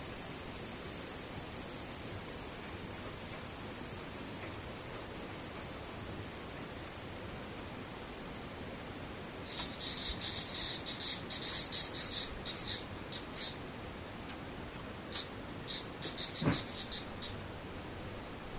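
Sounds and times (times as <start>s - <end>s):
cicadas hissing: 0.0s - 18.5s
shrill pulsing call: 9.5s - 13.6s
thump: 16.4s - 16.7s.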